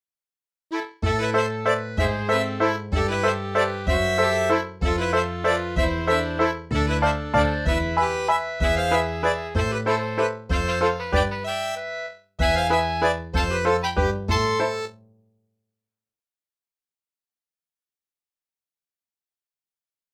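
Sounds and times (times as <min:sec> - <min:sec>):
bourree dance music: 0:01.0 - 0:11.6, 0:12.4 - 0:14.9.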